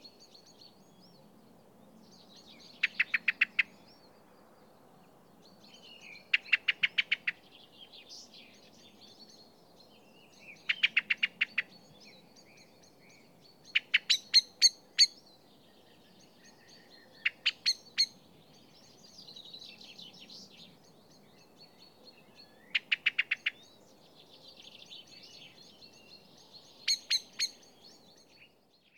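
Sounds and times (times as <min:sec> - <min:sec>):
common blackbird chinking calls: 0:02.6 - 0:03.8, 0:05.9 - 0:07.5, 0:10.4 - 0:12.0, 0:13.7 - 0:15.3, 0:16.4 - 0:18.2, 0:22.4 - 0:23.8, 0:25.2 - 0:28.0.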